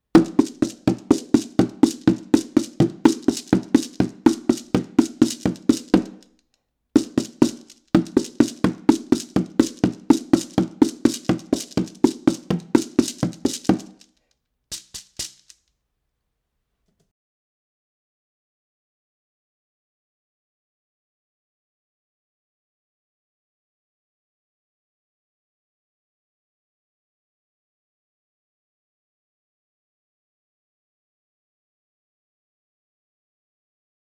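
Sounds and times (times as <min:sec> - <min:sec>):
percussion: 0:00.1 - 0:06.3, 0:07.0 - 0:15.6.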